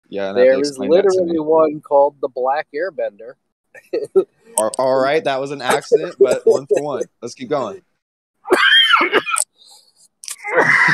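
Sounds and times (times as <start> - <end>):
speech: 0.1 - 7.9, 8.5 - 9.8, 10.5 - 10.9
laughter: 3.8 - 7.7
person coughing harshly: 5.7 - 7.1.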